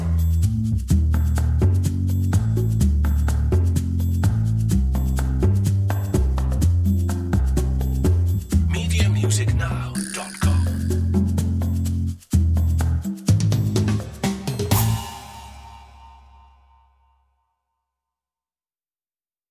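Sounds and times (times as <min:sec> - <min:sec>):
bass: 0:00.0 - 0:15.3
percussion: 0:00.0 - 0:17.1.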